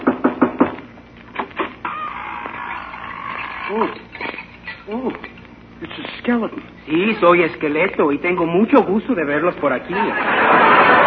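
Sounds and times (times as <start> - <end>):
knocking on a door: 0.0 - 0.8
speech: 3.7 - 4.1, 4.9 - 11.0
laughter: 9.9 - 11.0.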